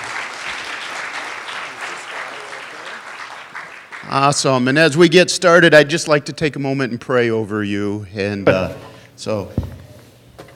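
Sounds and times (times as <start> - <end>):
audience applause: 0.0 - 4.8
speech: 4.1 - 9.7.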